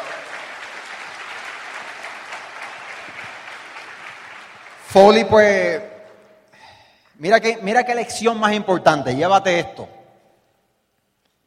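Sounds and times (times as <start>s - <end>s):
audience applause: 0.0s - 5.2s
speech: 4.9s - 5.9s, 7.2s - 10.0s.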